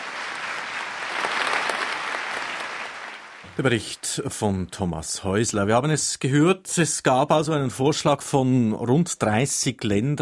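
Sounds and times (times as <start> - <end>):
crowd of delegates applauding: 0.0 - 3.9
speech: 3.6 - 10.2.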